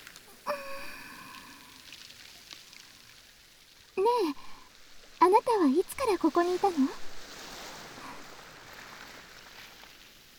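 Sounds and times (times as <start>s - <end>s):
ocean waves washing ashore: 0.0s - 2.0s, 4.0s - 10.3s
speech: 5.6s - 7.1s.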